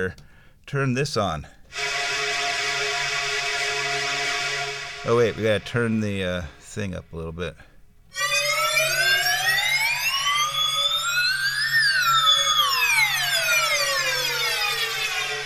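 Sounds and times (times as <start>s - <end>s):
speech: 0.0s - 1.9s, 5.0s - 7.7s
synthesizer imitating a slide whistle: 1.7s - 6.2s, 8.1s - 15.4s.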